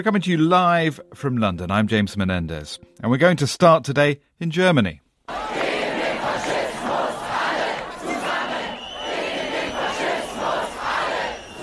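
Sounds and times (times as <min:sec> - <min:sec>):
speech: 0:00.0 - 0:05.0
protesters in Berlin chanting slogans: 0:05.3 - 0:11.6.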